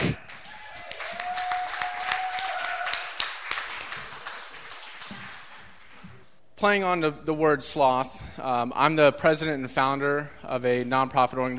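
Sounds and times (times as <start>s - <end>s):
audience applause: 0.0s - 6.3s
speech: 6.6s - 11.5s.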